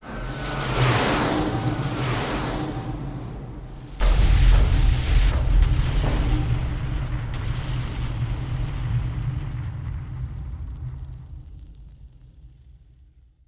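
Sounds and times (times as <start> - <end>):
fighter jets: 0.0 - 10.5
airstrike explosions: 4.0 - 12.6.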